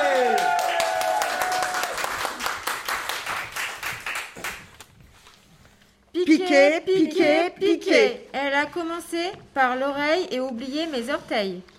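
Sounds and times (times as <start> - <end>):
audience applause for slam performers: 0.0 - 4.6
speech: 6.3 - 11.7.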